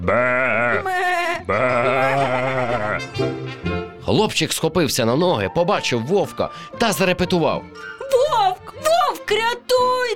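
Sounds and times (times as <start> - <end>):
speech: 0.0 - 1.7, 4.1 - 10.1
sheep bleating: 0.0 - 3.2.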